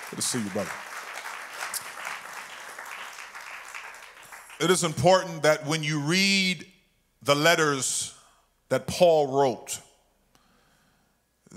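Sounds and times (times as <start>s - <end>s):
audience clapping hands: 0.0s - 5.1s
speech: 0.1s - 0.9s, 4.6s - 9.9s.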